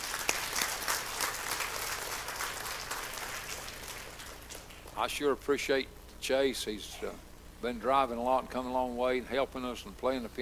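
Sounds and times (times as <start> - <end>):
audience applause: 0.0 - 5.0
speech: 5.0 - 10.4.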